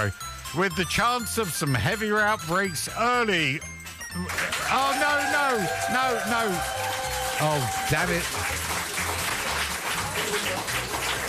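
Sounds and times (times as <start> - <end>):
speech: 0.0 - 8.6
canned applause sound effect: 3.8 - 11.2.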